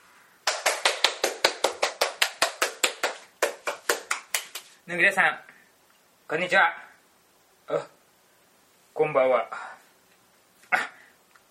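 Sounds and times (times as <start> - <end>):
applause welcoming guests: 0.4 - 4.8
speech: 4.9 - 5.5, 6.3 - 6.8, 7.7 - 8.0, 9.0 - 9.7.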